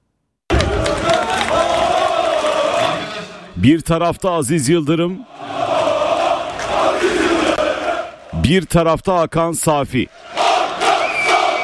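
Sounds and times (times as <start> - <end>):
members chanting at Fenerbahçe's election congress in a stadium: 0.5 - 3.6, 5.2 - 8.4, 10.1 - 11.6
speech: 3.6 - 5.4, 8.5 - 10.3.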